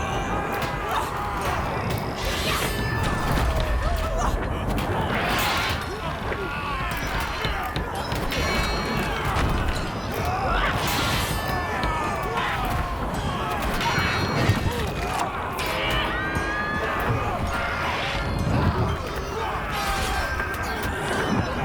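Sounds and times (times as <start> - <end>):
battle ambience at the docks: 0.0 - 21.6.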